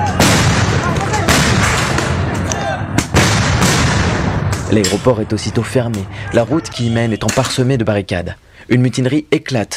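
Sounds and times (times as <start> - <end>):
stun grenades at night: 0.2 - 2.4, 3.0 - 4.7
speech: 4.7 - 9.7.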